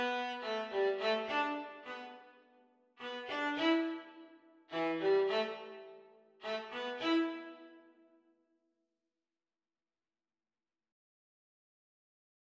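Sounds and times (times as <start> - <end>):
viola duet playalong at practice speed: 0.0 - 2.3, 3.0 - 7.7.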